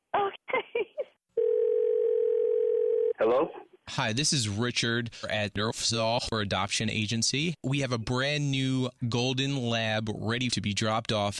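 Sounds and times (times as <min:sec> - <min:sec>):
telephone dial tone while calling back: 0:01.4 - 0:03.2
speech: 0:03.2 - 0:11.3.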